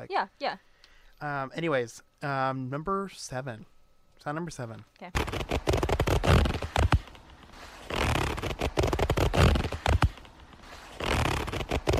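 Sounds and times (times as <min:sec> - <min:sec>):
speech: 0:00.0 - 0:05.8
zipper being pulled: 0:05.1 - 0:11.9.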